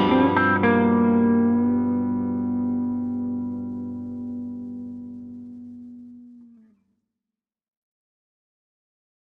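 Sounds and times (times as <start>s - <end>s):
blues music: 0.0s - 6.8s.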